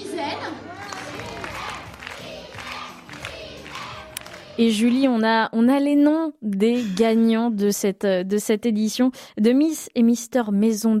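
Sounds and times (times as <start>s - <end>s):
cheering crowd: 0.5s - 5.1s
speech: 4.6s - 10.9s.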